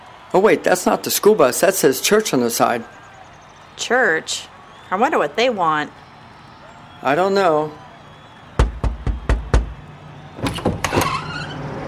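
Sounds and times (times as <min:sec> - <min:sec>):
speech: 0:00.3 - 0:03.0, 0:03.8 - 0:06.0, 0:07.0 - 0:07.8
knocking on a door: 0:08.6 - 0:09.8.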